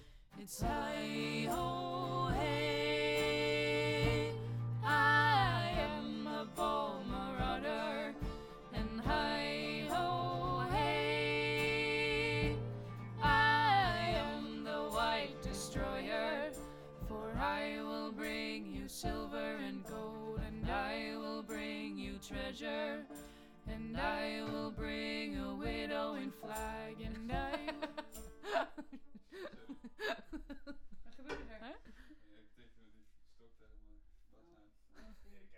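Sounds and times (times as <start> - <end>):
vocal recorded with figure-eight microphone: 0.4 - 28.7
laughter: 27.2 - 32.2.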